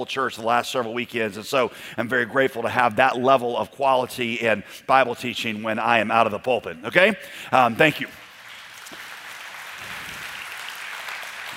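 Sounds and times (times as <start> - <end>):
speech: 0.0 - 8.3
audience applause: 8.2 - 11.5.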